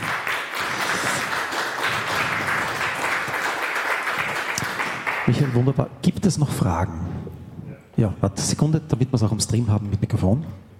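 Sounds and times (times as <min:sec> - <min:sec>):
audience applause: 0:00.0 - 0:05.7
speech: 0:05.3 - 0:07.1, 0:08.0 - 0:10.7.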